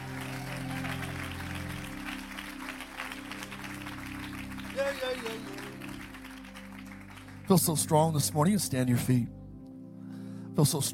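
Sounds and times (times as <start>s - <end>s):
audience hand clapping: 0.0s - 8.0s
speech: 4.8s - 5.6s, 7.5s - 9.4s, 10.6s - 10.9s.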